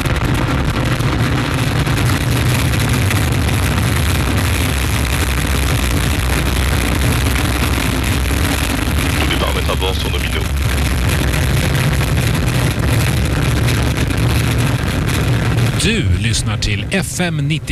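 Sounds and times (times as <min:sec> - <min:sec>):
Vulcain and EAP rocket engines igniting at liftoff: 0:00.0 - 0:17.7
speech: 0:16.4 - 0:17.7.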